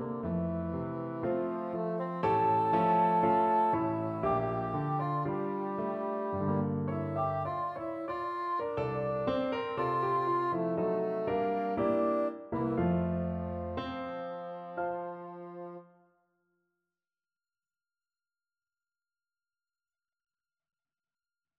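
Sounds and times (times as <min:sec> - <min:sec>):
bassoon melody: 0:00.0 - 0:16.0.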